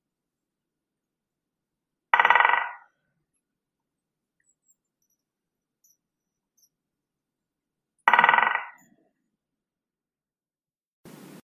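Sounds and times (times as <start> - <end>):
great spotted woodpecker Dendrocopos major: 2.2 - 2.9, 8.1 - 9.0.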